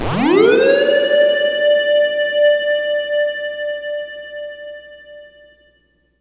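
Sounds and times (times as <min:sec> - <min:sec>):
synth glide: 0:00.0 - 0:02.8.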